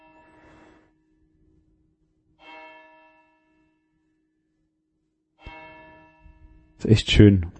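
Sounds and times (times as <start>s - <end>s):
church bells ringing: 0.0s - 0.8s, 2.3s - 4.0s, 5.4s - 6.8s
speech: 6.8s - 7.5s.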